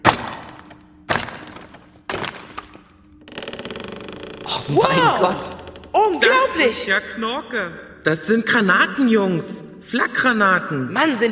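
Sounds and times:
hammer striking a chisel: 0.0 - 2.8
speech: 4.5 - 11.2.

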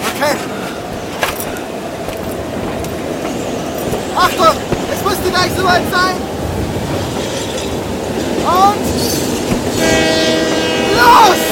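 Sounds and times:
moving train rumbling: 0.0 - 11.5
speech: 0.2 - 0.6, 5.4 - 6.3, 8.5 - 9.2.

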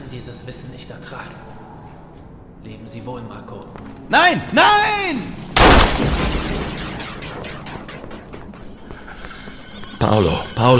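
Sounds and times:
speech: 0.1 - 1.6, 2.6 - 6.2, 10.0 - 10.7
gunshot: 5.6 - 9.2.

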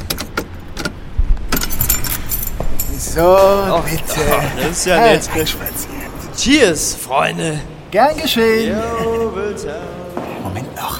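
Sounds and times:
keys jangling while searching for key: 1.5 - 6.3
laughter: 3.0 - 9.9
speech: 3.0 - 10.0.

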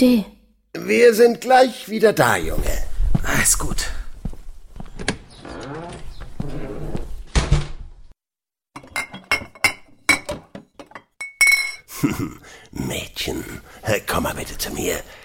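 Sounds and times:
speech: 0.0 - 4.0, 13.2 - 15.2
glass clinking while someone searches for a bottle of schnapps: 8.8 - 11.9.

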